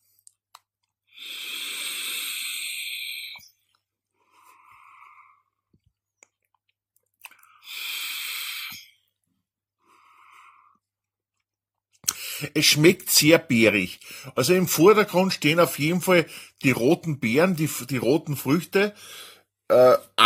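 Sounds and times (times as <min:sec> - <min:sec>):
hissing crackly e-cigarette inhales and breathy exhales: 0:01.1 - 0:03.6, 0:04.2 - 0:05.6, 0:07.3 - 0:09.1, 0:09.8 - 0:10.9, 0:12.0 - 0:12.5
speech: 0:12.4 - 0:20.1.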